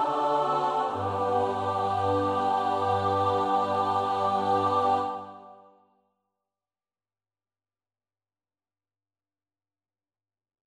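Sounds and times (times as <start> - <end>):
soprano alto tenor bass voices: 0.0 - 5.6.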